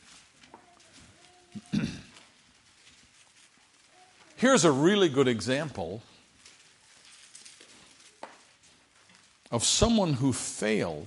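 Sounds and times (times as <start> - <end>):
many Bible pages turning: 0.0 - 10.3
speech: 4.4 - 6.1, 9.5 - 11.0.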